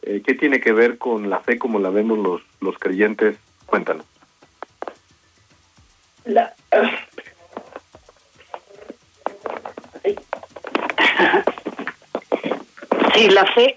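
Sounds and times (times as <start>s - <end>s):
speech: 0.1s - 4.1s, 6.3s - 7.1s, 13.2s - 13.7s
person coughing: 10.9s - 13.1s.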